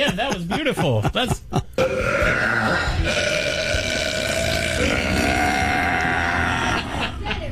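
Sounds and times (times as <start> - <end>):
speech: 0.0 - 1.9
woman's loud record-setting burp: 1.8 - 7.4.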